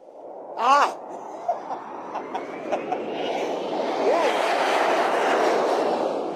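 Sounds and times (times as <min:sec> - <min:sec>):
jet airplane taking off: 0:00.1 - 0:06.3
speech: 0:00.6 - 0:01.1
laughter: 0:01.3 - 0:03.1.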